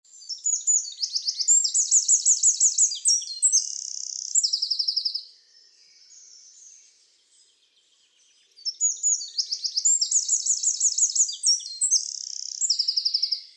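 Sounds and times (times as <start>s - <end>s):
Eurasian wren singing rapid trills: 0.1s - 5.3s, 6.0s - 13.5s.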